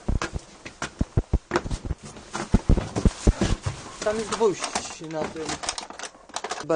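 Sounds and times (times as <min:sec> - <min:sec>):
footsteps climbing littered stairs in a derelict building: 0:00.0 - 0:04.3
speech: 0:04.1 - 0:05.7.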